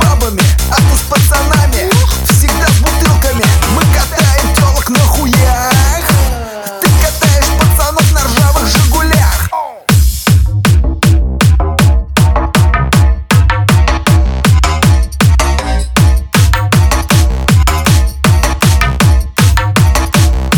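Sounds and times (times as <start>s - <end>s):
hard bass: 0.0s - 20.5s.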